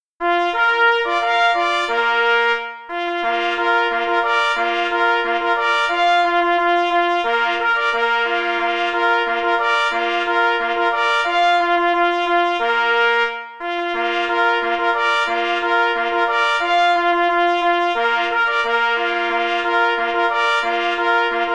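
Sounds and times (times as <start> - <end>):
march music: 0.2 - 21.5.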